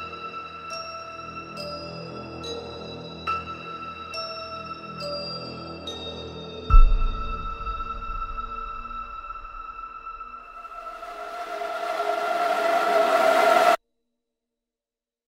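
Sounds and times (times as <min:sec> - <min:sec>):
epic intense horror trailer music: 0:06.7 - 0:13.8.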